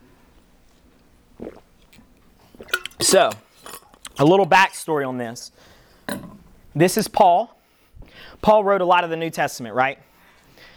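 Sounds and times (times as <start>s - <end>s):
sipping and gulping water: 0.3s - 4.2s
speech: 3.0s - 3.4s, 4.2s - 7.6s, 8.2s - 10.1s.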